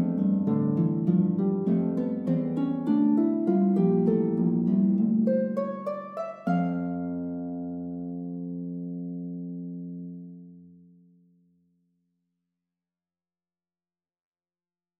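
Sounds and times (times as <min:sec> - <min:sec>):
prelude on lute: 0:00.0 - 0:11.1.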